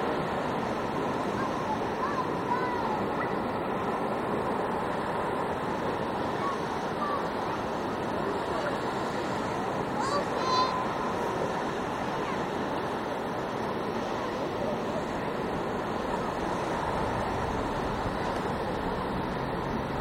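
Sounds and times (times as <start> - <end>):
ocean roar at a quiet seaside beach: 0.0 - 19.9
distant children's voices at a quiet seaside beach: 1.1 - 4.0, 6.1 - 13.2.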